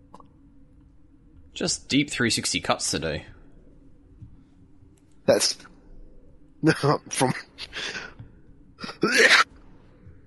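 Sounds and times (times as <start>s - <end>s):
speech: 1.6s - 3.3s, 5.3s - 5.7s, 6.6s - 8.1s, 8.8s - 9.5s
person coughing: 8.8s - 9.5s.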